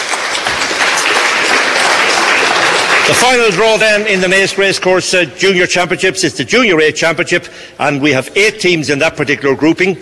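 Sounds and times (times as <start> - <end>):
audience applause greeting club teams at a junior championship draw: 0.0 - 4.5
speech: 3.1 - 10.0.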